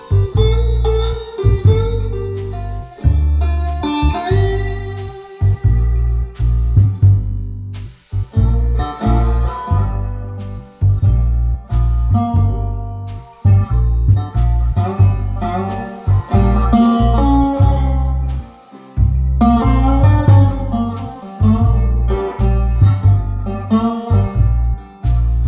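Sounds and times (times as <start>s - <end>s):
blues slide guitar: 0.0s - 25.4s.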